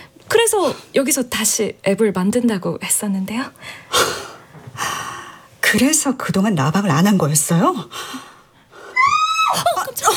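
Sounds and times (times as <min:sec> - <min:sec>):
speech: 0:00.4 - 0:04.2, 0:05.7 - 0:08.3
person screaming: 0:09.0 - 0:09.6.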